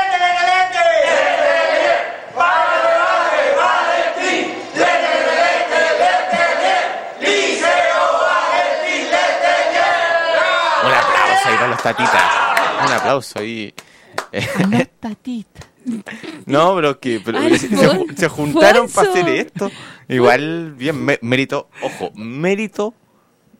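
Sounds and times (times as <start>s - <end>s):
recorded group shouting a cheer: 0.7s - 13.1s
speech: 11.8s - 23.0s
laughter: 14.4s - 15.0s, 16.1s - 19.9s.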